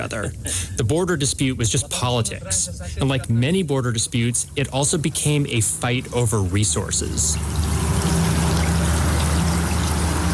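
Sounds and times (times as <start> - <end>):
speech: 0.0 - 8.1
river water flowing: 4.9 - 10.3.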